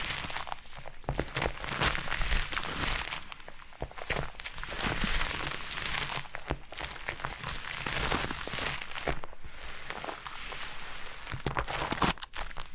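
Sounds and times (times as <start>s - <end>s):
foam rubbed and squeezed in a massage: 0.0s - 12.3s.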